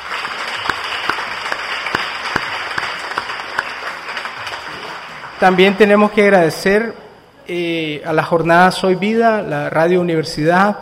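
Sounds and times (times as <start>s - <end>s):
audience applause: 0.0s - 5.4s
speech: 5.4s - 10.8s.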